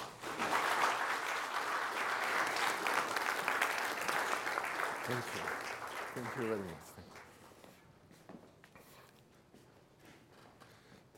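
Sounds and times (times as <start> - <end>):
audience applauding a guest professor at a university talk: 0.0 - 7.6
speech: 5.1 - 7.2.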